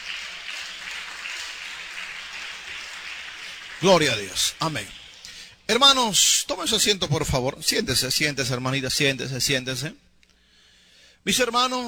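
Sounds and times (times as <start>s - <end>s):
audience applause: 0.0s - 5.2s
speech: 3.8s - 5.0s, 5.7s - 10.0s, 11.2s - 11.8s.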